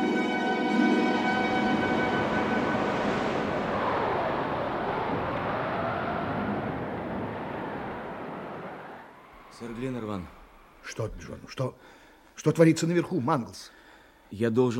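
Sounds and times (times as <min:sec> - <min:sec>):
hurricane wind howling: 0:00.0 - 0:10.9
storm waves crashing: 0:00.6 - 0:10.6
speech: 0:09.6 - 0:14.7.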